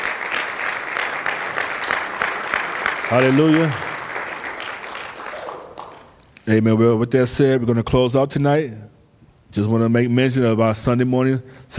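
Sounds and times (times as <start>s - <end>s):
audience hand clapping: 0.0s - 6.4s
speech: 3.1s - 3.8s, 6.4s - 8.9s, 9.5s - 11.7s.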